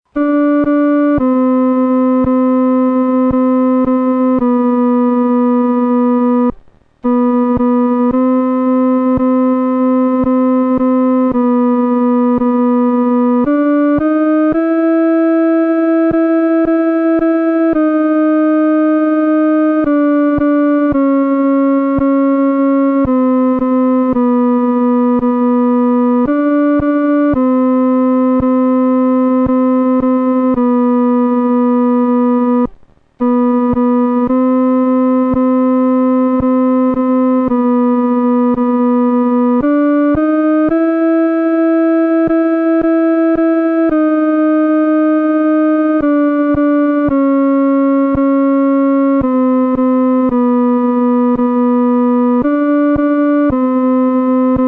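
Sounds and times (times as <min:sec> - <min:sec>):
solo instrument: 0:00.1 - 0:54.6.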